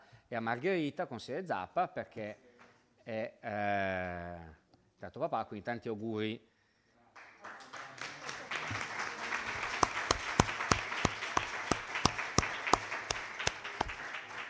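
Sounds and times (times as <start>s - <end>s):
speech: 0.3s - 2.5s, 3.1s - 6.5s
applause: 7.1s - 14.4s.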